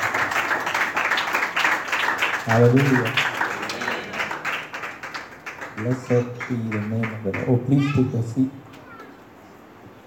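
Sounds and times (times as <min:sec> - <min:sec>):
crowd applause welcoming a speaker: 0:00.0 - 0:07.6
speech: 0:02.5 - 0:03.3, 0:05.8 - 0:08.6.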